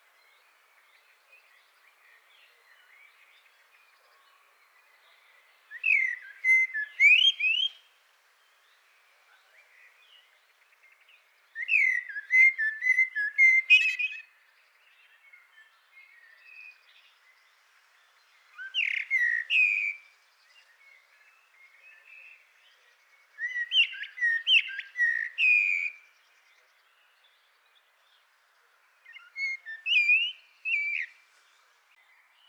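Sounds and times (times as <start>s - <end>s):
Eurasian blackbird song: 5.7s - 7.8s, 11.6s - 14.2s, 18.6s - 20.0s, 23.3s - 26.1s, 29.1s - 31.2s.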